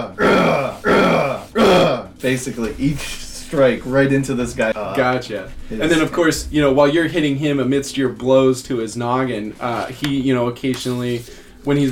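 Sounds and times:
person imitating a fighter with loud tennis-style grunts: 0:00.0 - 0:02.2
speech: 0:02.2 - 0:11.9.

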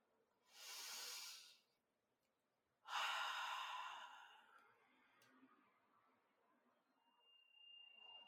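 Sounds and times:
deep breaths during a guided breathing exercise: 0:02.9 - 0:04.5.

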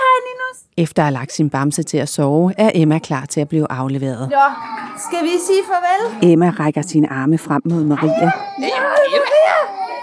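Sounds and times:
speech: 0:00.8 - 0:09.8
child crying: 0:04.3 - 0:05.9, 0:08.0 - 0:10.0.

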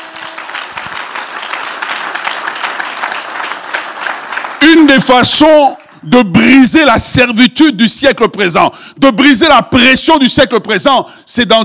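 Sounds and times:
French-speaking church congregation applauding during a sermon: 0:00.0 - 0:06.5
speech: 0:04.7 - 0:11.6.

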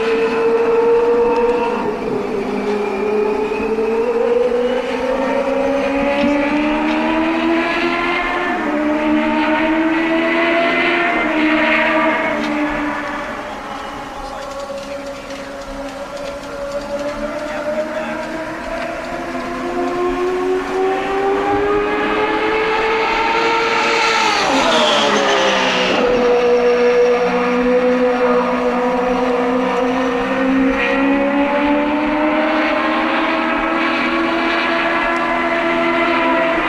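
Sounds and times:
turbocharged race car engines roaring around the oval: 0:00.0 - 0:36.6.

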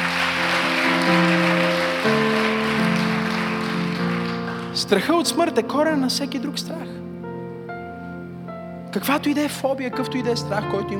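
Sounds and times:
audience clapping: 0:00.0 - 0:05.1
speech: 0:04.8 - 0:07.1, 0:08.9 - 0:10.9.

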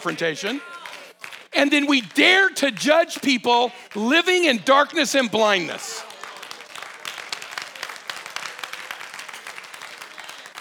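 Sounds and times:
speech: 0:00.0 - 0:00.9, 0:01.6 - 0:06.1
audience clapping: 0:00.0 - 0:10.5.

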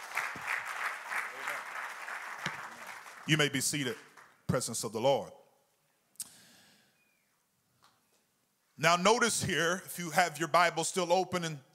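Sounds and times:
audience applause: 0:00.0 - 0:04.3
speech: 0:03.3 - 0:05.4, 0:08.8 - 0:11.7.

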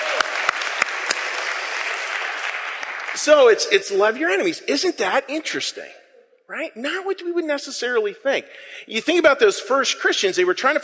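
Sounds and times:
round of applause from a group: 0:00.0 - 0:03.8
speech: 0:03.2 - 0:10.8.

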